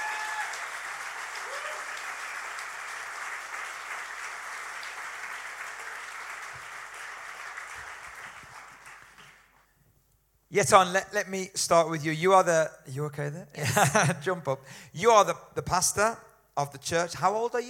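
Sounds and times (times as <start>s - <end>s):
audience applause welcoming guests on stage at a church gathering: 0.0s - 9.6s
speech: 10.5s - 17.6s.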